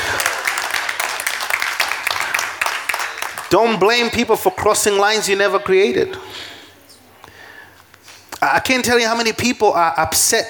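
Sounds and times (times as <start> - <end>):
audience clapping: 0.0 - 4.5
speech: 3.5 - 6.5, 8.4 - 10.4.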